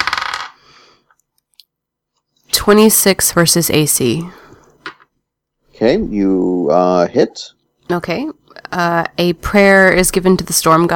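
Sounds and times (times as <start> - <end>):
dice rolling on a table: 0.0 - 0.6, 4.8 - 5.1
speech: 2.6 - 4.4, 5.8 - 10.9.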